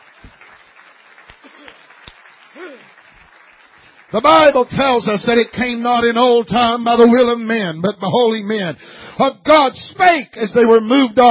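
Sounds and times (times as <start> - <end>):
audience clapping hands: 0.0 - 7.4
speech: 2.6 - 3.0, 4.1 - 11.2.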